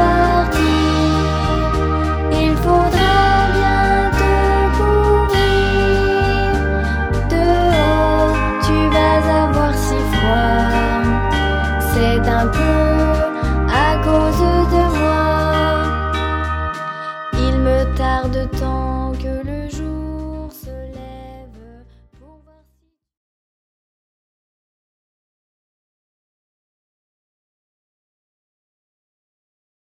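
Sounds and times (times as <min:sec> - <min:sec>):
French children's song: 0:00.0 - 0:22.8.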